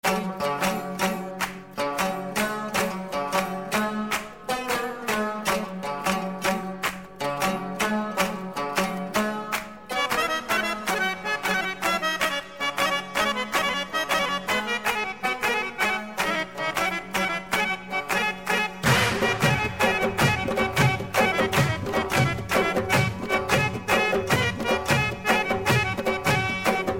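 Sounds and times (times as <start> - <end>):
classic beats: 0.0 - 26.9.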